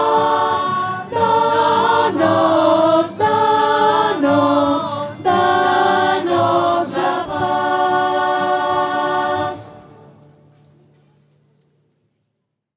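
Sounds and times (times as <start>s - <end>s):
voices singing: 0.0s - 10.1s.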